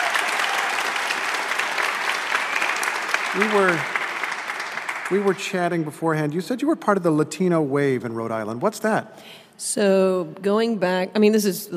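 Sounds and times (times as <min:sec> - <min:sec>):
live audience applause welcoming a guest onto a panel discussion: 0:00.0 - 0:06.5
speech: 0:03.3 - 0:04.0, 0:05.1 - 0:11.7.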